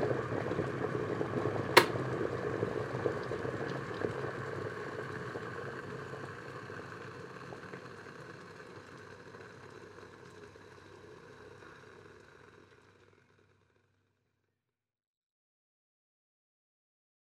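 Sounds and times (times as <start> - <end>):
water boiler: 0.0 - 11.8.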